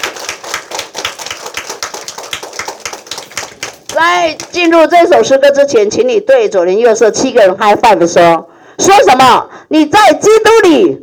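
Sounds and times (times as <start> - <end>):
audience applause: 0.0 - 4.6
speech: 4.0 - 11.0.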